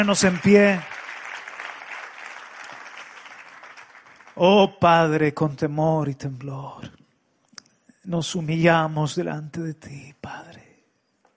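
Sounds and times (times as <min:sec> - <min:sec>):
speech: 0:00.0 - 0:01.0, 0:04.4 - 0:07.0, 0:08.0 - 0:10.7
audience applause: 0:00.0 - 0:04.4.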